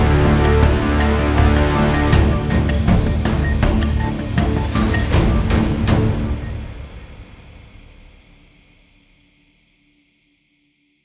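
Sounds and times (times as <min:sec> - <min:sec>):
epic music: 0:00.0 - 0:08.1.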